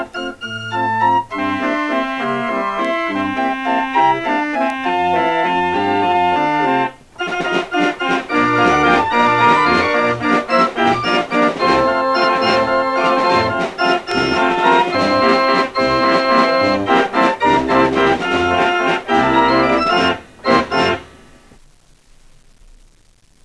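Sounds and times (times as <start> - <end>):
fairground organ music: 0.0 - 21.6.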